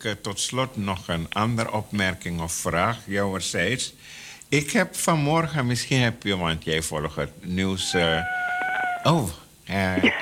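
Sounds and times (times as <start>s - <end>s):
speech: 0.0s - 10.2s
cat meowing: 7.8s - 9.3s.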